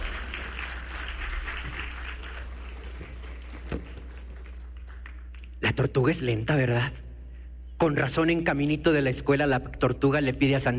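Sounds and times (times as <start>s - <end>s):
applause: 0.0s - 5.3s
speech: 5.8s - 7.0s, 7.8s - 10.7s.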